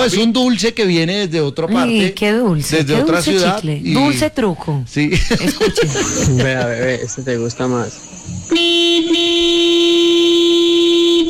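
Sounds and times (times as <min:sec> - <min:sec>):
speech: 0:00.0 - 0:09.2
laughter: 0:05.1 - 0:07.5
loud long car horn honk: 0:08.4 - 0:11.2.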